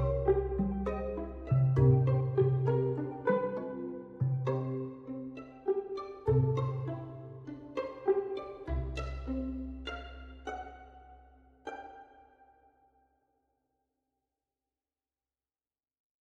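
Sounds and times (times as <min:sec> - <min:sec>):
pizzicato strings: 0:00.0 - 0:12.6.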